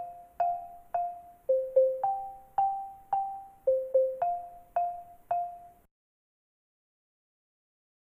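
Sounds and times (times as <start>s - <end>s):
xylophone: 0.0s - 5.9s.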